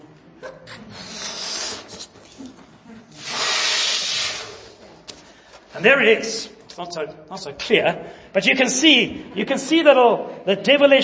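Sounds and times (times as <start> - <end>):
person blowing up a balloon by mouth: 0.8 - 2.4, 3.1 - 4.8
speech: 5.8 - 11.0.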